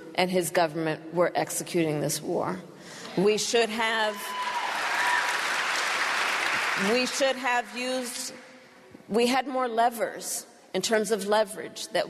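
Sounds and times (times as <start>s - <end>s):
speech: 0.2s - 4.6s, 6.8s - 8.5s, 9.1s - 12.0s
crowd clapping and cheering: 4.2s - 8.5s.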